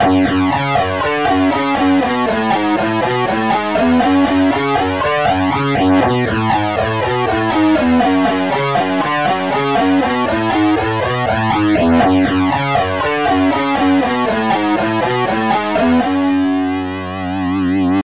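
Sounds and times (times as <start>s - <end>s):
musical riff: 0.0s - 18.0s.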